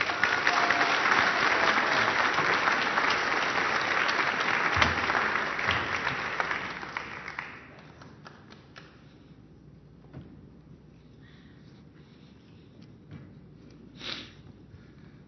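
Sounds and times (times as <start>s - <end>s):
church congregation applauding a guest speaker: 0.0s - 8.9s.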